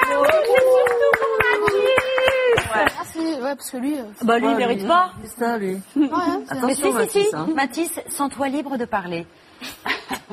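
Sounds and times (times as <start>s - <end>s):
audience applause: 0.0s - 3.0s
speech: 3.5s - 9.9s.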